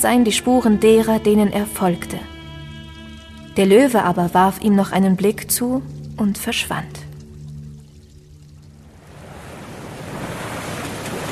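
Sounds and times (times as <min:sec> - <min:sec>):
speech: 0:00.0 - 0:02.4, 0:03.6 - 0:07.1
ocean waves: 0:00.0 - 0:11.3.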